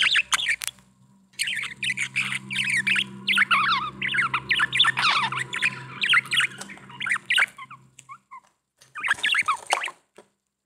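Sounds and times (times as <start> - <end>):
budgerigar warbling chatter: 0.0 - 0.8, 1.4 - 8.3
low steady hum: 0.0 - 8.2.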